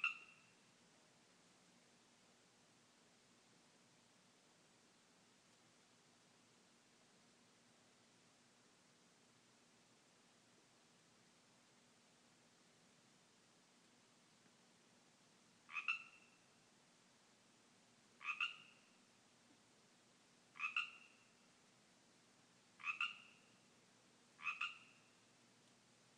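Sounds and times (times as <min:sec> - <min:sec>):
Pacific tree frogs calling in a yard: 0:00.0 - 0:00.6, 0:15.7 - 0:16.5, 0:18.2 - 0:19.0, 0:20.5 - 0:21.4, 0:22.8 - 0:23.6, 0:24.4 - 0:25.2.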